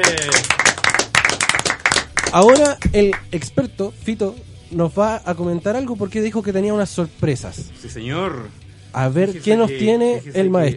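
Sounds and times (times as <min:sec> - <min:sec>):
applause: 0:00.0 - 0:03.3
speech: 0:02.3 - 0:10.7.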